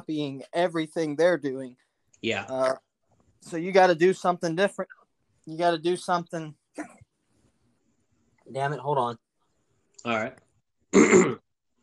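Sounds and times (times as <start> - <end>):
speech: 0.1 - 7.0, 8.5 - 9.2, 10.0 - 11.4
hiccups: 10.9 - 11.4.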